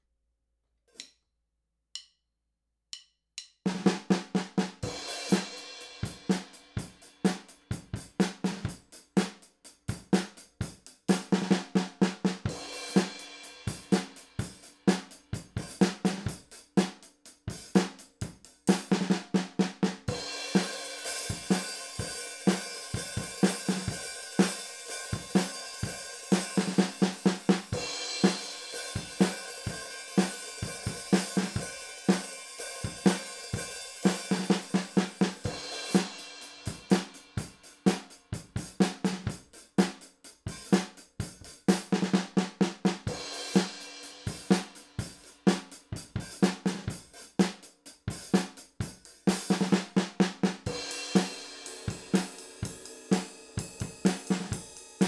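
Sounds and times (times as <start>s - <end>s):
drums: 2.9s - 55.0s.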